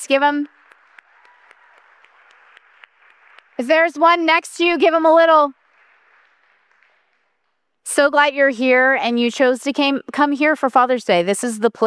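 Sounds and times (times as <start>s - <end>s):
speech: 0.0s - 0.6s, 3.6s - 5.6s, 7.9s - 11.8s
church congregation clapping: 0.0s - 7.8s.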